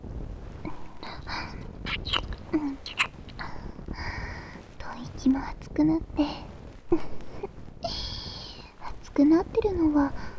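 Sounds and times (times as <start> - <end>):
kissing sounds: 1.9 - 3.4
speech: 5.0 - 7.1, 9.2 - 10.3.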